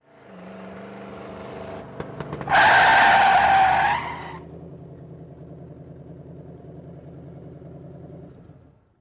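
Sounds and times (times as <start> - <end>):
car skidding fast: 0.8 - 4.7.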